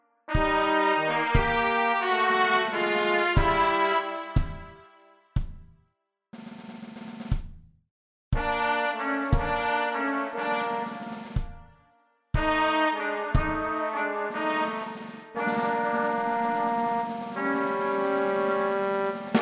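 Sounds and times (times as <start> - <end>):
trumpet: 0.0 - 5.4, 8.4 - 19.4
drums: 0.3 - 4.8, 5.4 - 5.8, 6.4 - 11.8, 12.4 - 19.4
trombone: 0.3 - 4.9, 8.4 - 11.6, 12.4 - 19.4.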